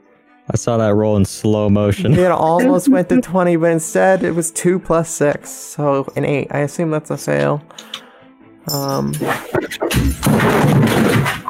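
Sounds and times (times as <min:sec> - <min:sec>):
speech: 0:00.5 - 0:08.0, 0:08.7 - 0:11.4
laughter: 0:01.7 - 0:03.4
person exclaiming: 0:02.0 - 0:03.3.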